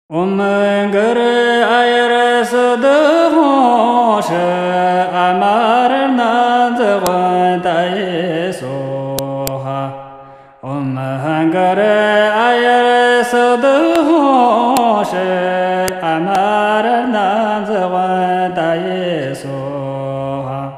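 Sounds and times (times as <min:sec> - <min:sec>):
Buddhist long life mantra chanting: 0:00.1 - 0:20.7.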